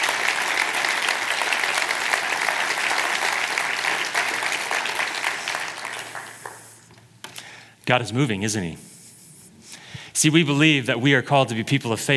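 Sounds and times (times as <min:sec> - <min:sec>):
audience applauding: 0:00.0 - 0:06.9
speech: 0:07.9 - 0:08.9, 0:10.2 - 0:12.1.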